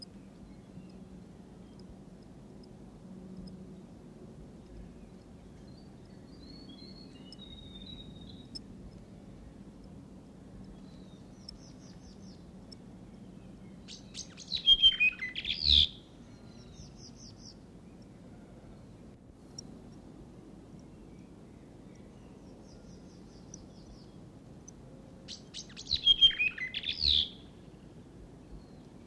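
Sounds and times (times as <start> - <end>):
whitehead territorial whistle call: 14.2 - 16.0, 25.6 - 27.4.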